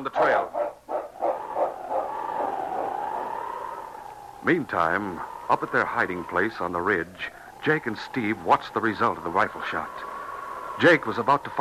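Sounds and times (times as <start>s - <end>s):
speech: 0.2s - 0.6s, 4.4s - 10.1s, 10.8s - 11.6s
large dog barking: 0.2s - 3.1s
large dog whining: 0.2s - 4.3s.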